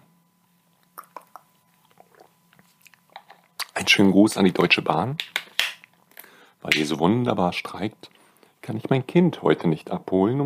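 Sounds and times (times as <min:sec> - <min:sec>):
mouth clicks and smacks from sipping a 4Bro Coco Schoko drink: 0:00.8 - 0:03.8
speech: 0:03.9 - 0:05.4, 0:06.7 - 0:10.4.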